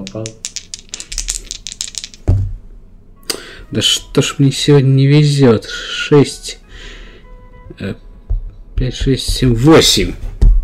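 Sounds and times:
dice rolling: 0:00.0 - 0:02.5
speech: 0:00.1 - 0:00.5, 0:03.7 - 0:06.6, 0:07.8 - 0:08.0, 0:08.8 - 0:10.3.

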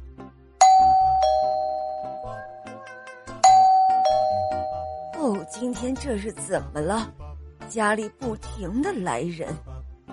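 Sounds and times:
doorbell chiming ding-dong: 0:00.6 - 0:06.0
speech: 0:05.2 - 0:09.7.

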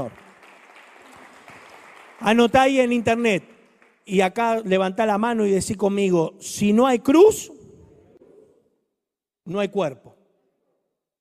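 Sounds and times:
speech: 0:00.0 - 0:00.3, 0:02.2 - 0:07.6, 0:09.5 - 0:10.2
crowd clapping: 0:00.0 - 0:04.6.

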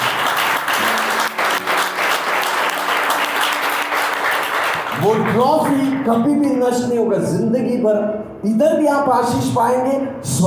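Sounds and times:
audience clapping: 0:00.0 - 0:06.4
speech: 0:05.0 - 0:10.4.

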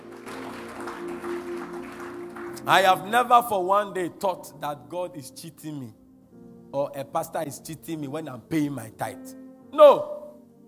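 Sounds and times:
audience clapping: 0:00.0 - 0:02.9
speech: 0:02.6 - 0:06.0, 0:06.7 - 0:10.2.

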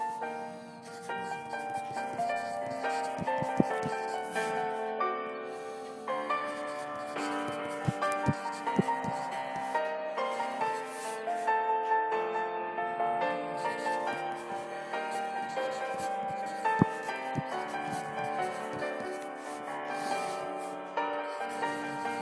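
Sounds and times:
flowing study-session piano tune: 0:00.0 - 0:22.1
pencil taps and scratches: 0:01.1 - 0:04.6, 0:06.3 - 0:11.2, 0:13.6 - 0:20.4, 0:21.4 - 0:22.1.

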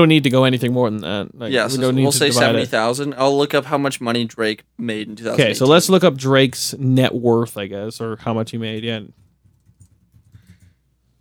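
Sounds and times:
speech: 0:00.0 - 0:09.2
typing on a keyboard: 0:09.2 - 0:10.8.

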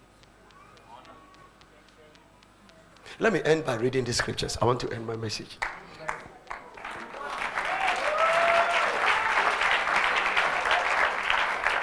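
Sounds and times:
speech: 0:03.2 - 0:05.8
audience clapping: 0:05.6 - 0:11.8.

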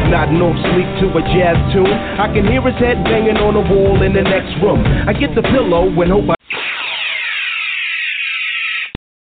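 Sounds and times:
speech: 0:00.1 - 0:06.4
sci-fi phaser sound effect: 0:06.5 - 0:09.0.

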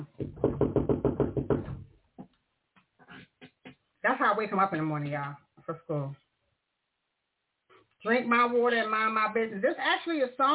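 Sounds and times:
knocking on a wall: 0:00.1 - 0:01.9
speech: 0:04.3 - 0:06.2, 0:08.0 - 0:10.5.

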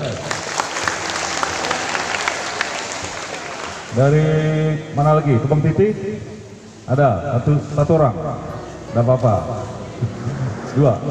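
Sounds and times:
audience applause: 0:00.0 - 0:03.9
speech: 0:04.0 - 0:11.0.

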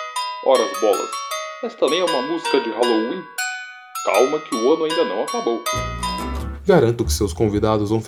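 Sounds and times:
bells ringing: 0:00.3 - 0:06.6
speech: 0:00.5 - 0:03.4, 0:04.0 - 0:05.9, 0:06.7 - 0:08.0.

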